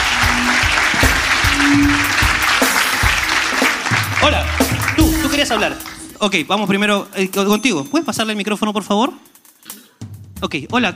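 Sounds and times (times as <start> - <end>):
faint tonal hum: 0.0 - 3.5
audience applause: 0.0 - 6.2
speech: 5.4 - 9.3, 10.4 - 10.9.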